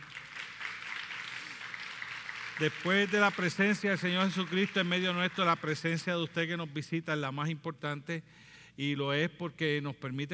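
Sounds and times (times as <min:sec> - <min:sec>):
audience applause: 0:00.0 - 0:06.0
speech: 0:02.6 - 0:10.3.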